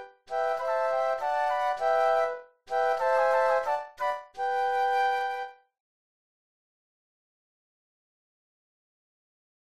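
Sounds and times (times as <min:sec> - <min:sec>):
classical flute trio playing an allegro: 0:00.3 - 0:05.6.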